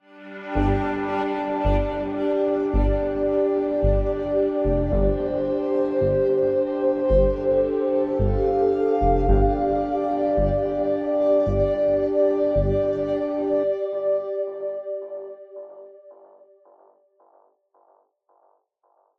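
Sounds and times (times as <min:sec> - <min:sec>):
winter day ambient music: 0:00.0 - 0:16.8.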